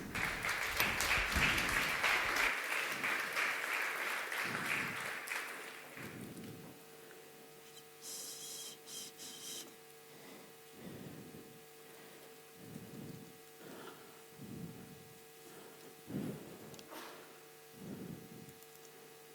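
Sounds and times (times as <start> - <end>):
audience applause: 0.0 - 6.4.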